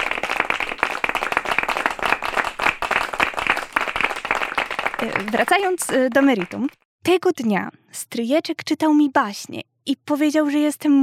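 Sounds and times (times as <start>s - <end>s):
audience applause: 0.0s - 6.8s
speech: 5.0s - 11.0s.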